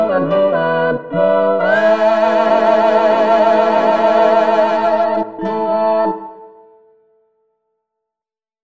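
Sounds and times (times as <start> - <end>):
song: 0.0 - 6.9.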